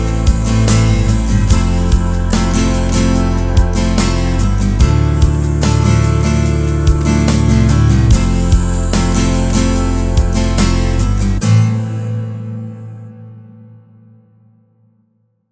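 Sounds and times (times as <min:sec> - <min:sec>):
losing jingle: 0:00.0 - 0:11.4.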